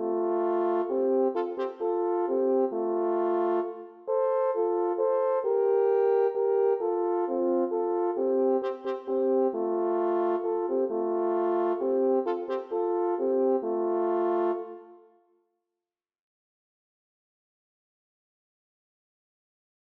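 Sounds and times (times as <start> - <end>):
horn: 0.0 - 15.2.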